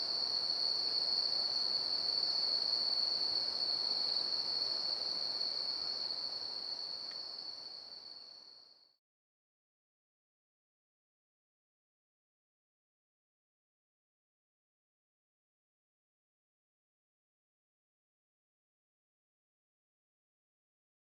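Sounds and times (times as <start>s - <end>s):
natural night sounds in Boquete: 0.0s - 9.0s.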